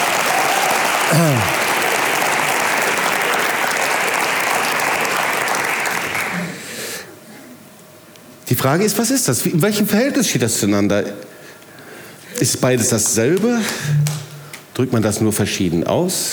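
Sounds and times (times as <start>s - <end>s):
audience applause: 0.0s - 6.6s
speech: 1.1s - 1.6s, 8.5s - 11.4s, 12.4s - 14.2s, 14.8s - 16.3s.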